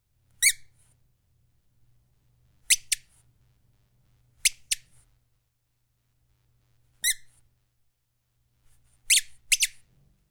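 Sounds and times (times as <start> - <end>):
chicken toy: 0.4 - 0.7, 2.7 - 3.1, 7.0 - 7.4, 9.1 - 9.8.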